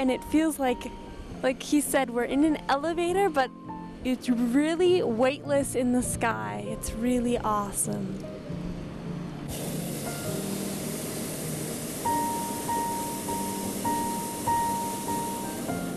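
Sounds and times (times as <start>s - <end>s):
speech: 0.0s - 8.4s
hot air balloon burner firing in flight above a city: 8.9s - 15.9s.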